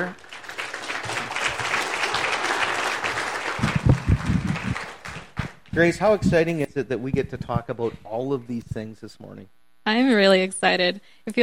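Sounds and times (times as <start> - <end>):
speech: 0.0 - 0.4, 5.8 - 11.4
audience applause welcoming a missions coordinator to the stage: 0.0 - 6.0.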